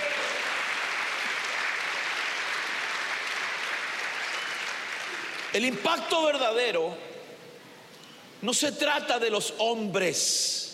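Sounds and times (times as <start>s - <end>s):
audience applause: 0.0s - 5.8s
speech: 5.6s - 7.1s, 8.4s - 10.6s.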